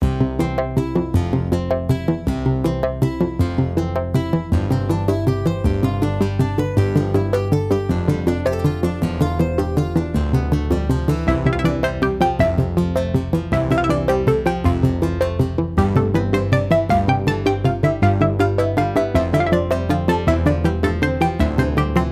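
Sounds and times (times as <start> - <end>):
dreamy dining hall music loop: 0.0 - 22.0.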